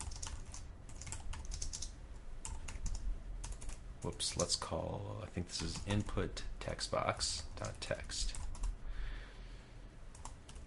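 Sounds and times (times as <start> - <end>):
typing code on a computer keyboard: 0.0 - 4.5, 7.6 - 8.7, 10.1 - 10.6
speech: 4.0 - 8.4.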